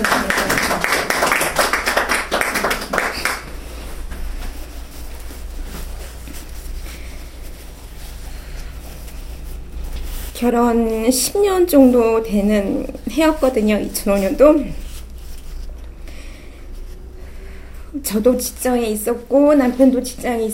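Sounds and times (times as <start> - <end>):
audience applause: 0.0 - 3.5
low steady hum: 0.0 - 20.5
speech: 10.5 - 14.8, 18.2 - 20.5.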